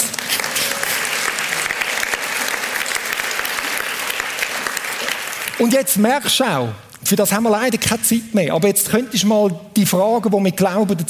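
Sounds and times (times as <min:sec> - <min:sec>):
audience applause: 0:00.0 - 0:05.7
speech: 0:05.6 - 0:11.0.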